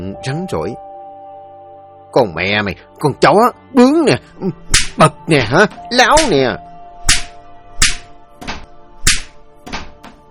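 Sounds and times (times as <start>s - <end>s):
speech: 0.1s - 0.9s, 2.1s - 6.6s
slaps and punches to a body: 4.7s - 5.0s, 6.2s - 6.4s, 7.1s - 10.2s.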